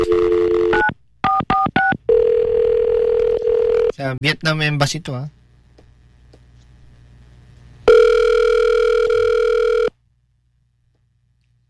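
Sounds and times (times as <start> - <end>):
telephone dial tone as someone calls an embassy: 0.0 - 3.9, 7.9 - 9.9
speech: 4.0 - 5.4.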